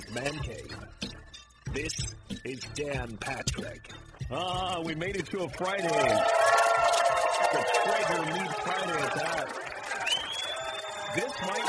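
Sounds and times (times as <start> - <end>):
speech: 0.1 - 1.1, 1.7 - 6.6, 7.4 - 9.7, 11.1 - 11.6
crowd cheering: 5.6 - 11.6.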